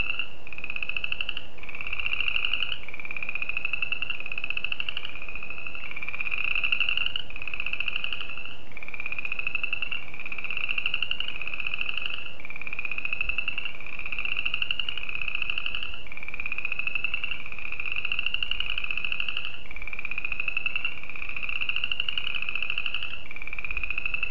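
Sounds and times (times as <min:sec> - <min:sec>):
Spring peeper chorus: 0:00.0 - 0:24.2
faint hiss: 0:00.0 - 0:24.2.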